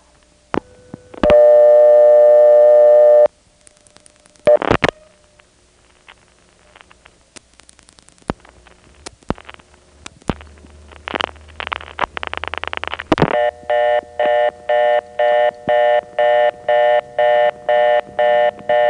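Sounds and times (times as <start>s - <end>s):
long steady telephone tone: 0.4s - 3.4s, 4.4s - 5.5s, 12.1s - 18.8s
dialing clicks and pulses: 0.5s - 5.0s, 7.6s - 18.8s
telephone reorder tone from a step-by-step exchange via crossbar: 0.6s - 3.3s, 4.4s - 5.2s, 13.2s - 18.8s.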